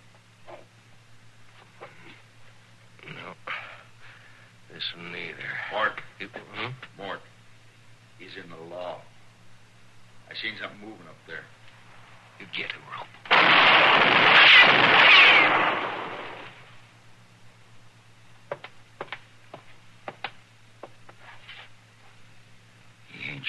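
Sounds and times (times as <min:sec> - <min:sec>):
gunshot fired during a tense armed standoff: 0:13.3 - 0:16.6.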